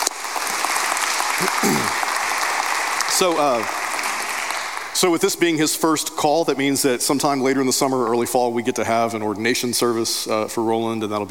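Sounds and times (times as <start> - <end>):
audience applauding: 0.0 - 5.5
speech: 1.4 - 2.0, 3.2 - 3.8, 5.0 - 11.3.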